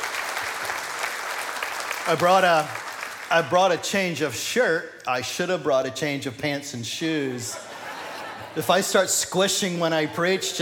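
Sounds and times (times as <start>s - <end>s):
audience applause for those saying yes to baptism: 0.0s - 3.6s
speech: 2.1s - 7.7s, 8.5s - 10.6s
laughter: 7.4s - 9.1s.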